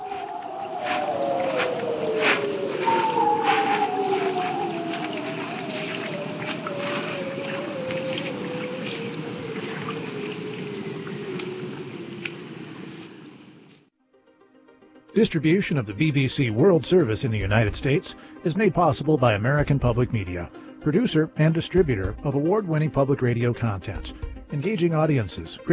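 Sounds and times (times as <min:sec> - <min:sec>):
haunting bearded seal calls: 0:00.0 - 0:12.0
speech: 0:15.2 - 0:25.7.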